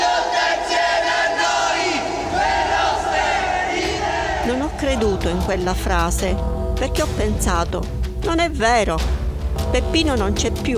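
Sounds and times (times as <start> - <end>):
large crowd chanting in unison: 0.0 - 6.2
speech: 4.9 - 10.7.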